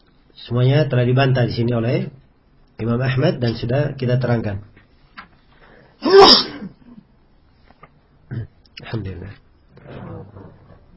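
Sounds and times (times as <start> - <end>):
speech: 0.4 - 2.2, 2.8 - 4.7
loud explosive sneeze: 6.0 - 7.0.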